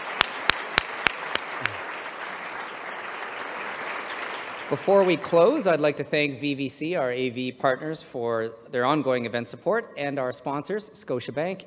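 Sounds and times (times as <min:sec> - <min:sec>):
audience hand claps for panelists: 0:00.0 - 0:04.7
speech: 0:04.7 - 0:11.6.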